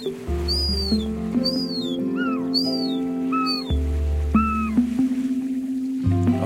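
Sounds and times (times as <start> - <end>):
young herring gulls calling overhead: 0.0 - 5.0, 6.3 - 6.4
low rumbling drone: 0.0 - 6.4.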